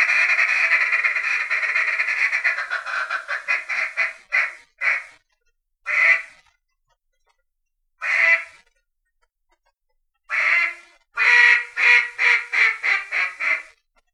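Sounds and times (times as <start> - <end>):
Mallard quacking: 0.0 - 5.1, 5.9 - 6.4, 8.0 - 8.6, 10.3 - 13.8.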